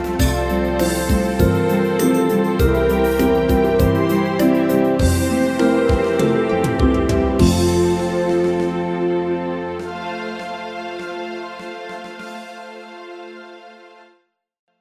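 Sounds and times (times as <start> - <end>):
bass line without melody: 0.0 - 10.2.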